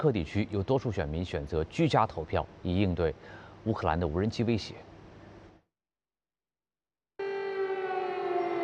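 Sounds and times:
speech: 0.0 - 4.9
air raid siren: 7.2 - 8.6.

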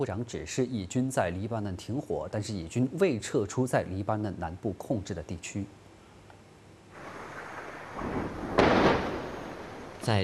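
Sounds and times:
speech: 0.0 - 5.8, 10.0 - 10.2
large explosion from an airstrike in Nabatieh, southern Lebanon: 7.0 - 10.0.

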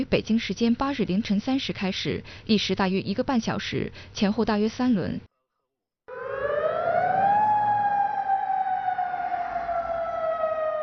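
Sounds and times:
speech: 0.0 - 5.3
air raid siren: 6.1 - 10.8.

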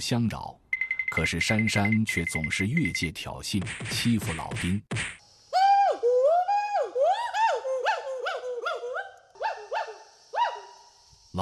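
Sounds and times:
speech: 0.0 - 5.2
white-cheeked gibbon whooping calls: 5.6 - 10.9.

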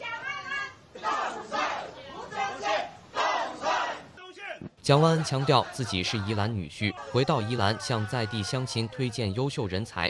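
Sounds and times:
crowd chanting and cheering election-victory wishes at a market in Yilan: 0.9 - 4.1, 4.9 - 9.0
speech: 4.8 - 10.0.

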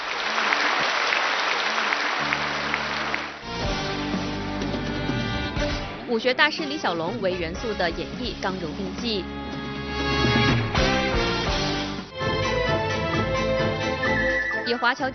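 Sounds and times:
audience clapping at a stage show: 0.0 - 3.8
stage music with sustained tones: 0.0 - 15.1
speech: 6.1 - 9.4, 14.8 - 15.1.

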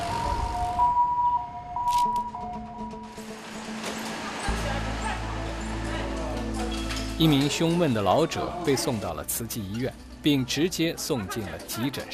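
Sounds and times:
emergency vehicle siren wailing: 0.0 - 3.3
street noise: 0.0 - 12.1
speech: 7.2 - 12.1.

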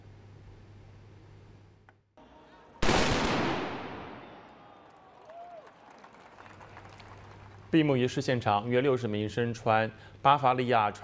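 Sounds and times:
black powder gun salute shot with rolling rumble: 2.8 - 4.5
speech: 7.7 - 11.0.

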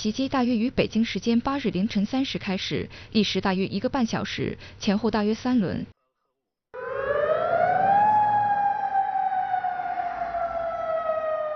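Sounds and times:
speech: 0.0 - 6.0
air raid siren wailing: 6.8 - 11.5.

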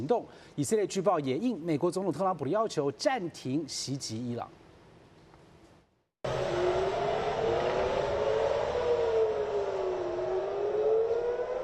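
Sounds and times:
speech: 0.0 - 4.6
air raid warning siren wailing: 6.3 - 11.6.

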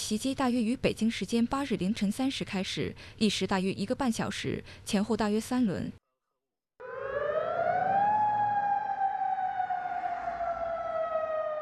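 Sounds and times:
speech: 0.1 - 6.0
air raid siren in Amman: 6.8 - 11.6.

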